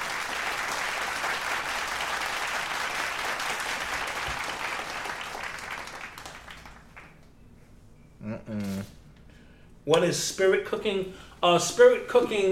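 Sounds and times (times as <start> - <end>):
audience applause: 0.0 - 7.2
speech: 9.9 - 12.5.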